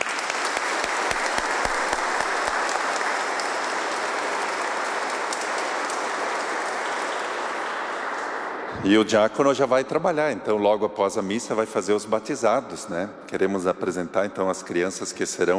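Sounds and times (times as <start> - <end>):
crowd applauding: 0.0 - 8.7
speech: 8.8 - 15.5.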